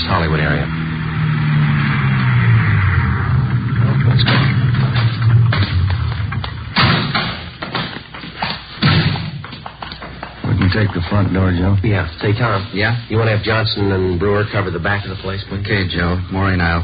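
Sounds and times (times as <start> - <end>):
car engine rumbling and slowing: 0.0 - 16.8
sharp thuds: 4.1 - 10.6
speech: 10.8 - 16.8.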